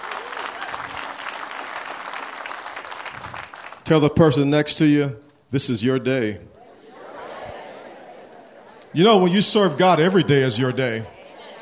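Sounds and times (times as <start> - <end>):
audience clapping: 0.0 - 4.0, 8.6 - 10.9
speech: 3.9 - 6.5, 9.0 - 11.2
laughter: 6.5 - 11.5.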